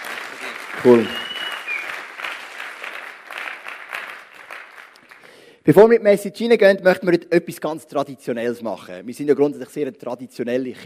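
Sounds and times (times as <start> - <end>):
audience applause: 0.0 - 5.5
speech: 0.8 - 1.2, 5.6 - 10.8.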